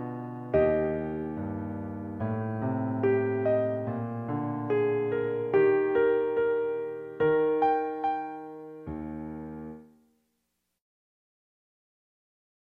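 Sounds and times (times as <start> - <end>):
musical accompaniment: 0.0 - 10.0.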